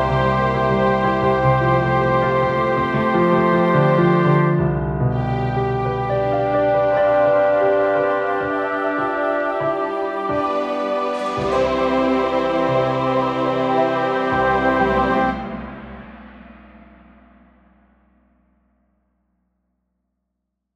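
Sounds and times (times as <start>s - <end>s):
orchestral prelude: 0.0s - 16.1s.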